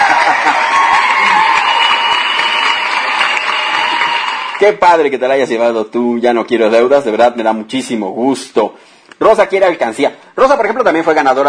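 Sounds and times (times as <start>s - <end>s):
applause: 0.0s - 4.8s
speech: 4.6s - 11.4s.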